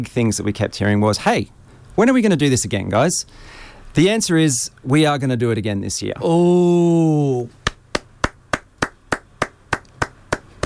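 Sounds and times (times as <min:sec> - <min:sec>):
speech: 0:00.0 - 0:07.6
slow polite golf clap: 0:07.6 - 0:10.6.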